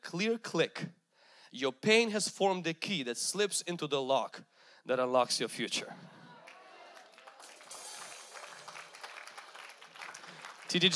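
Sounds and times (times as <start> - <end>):
speech: 0.1 - 6.1, 10.7 - 10.9
audience applause: 6.3 - 10.9.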